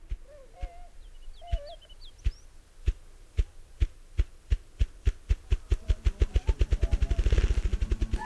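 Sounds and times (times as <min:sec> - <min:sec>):
faint bird calls chirping: 0:00.0 - 0:02.6, 0:05.5 - 0:08.2
bird's wings drumming in rapid thumping: 0:00.0 - 0:08.2.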